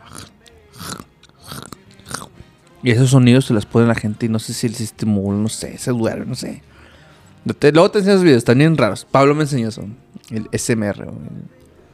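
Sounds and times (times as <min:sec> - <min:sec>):
person chewing crunchy potato chips: 0:00.0 - 0:02.4
speech: 0:02.8 - 0:06.8, 0:07.4 - 0:11.6.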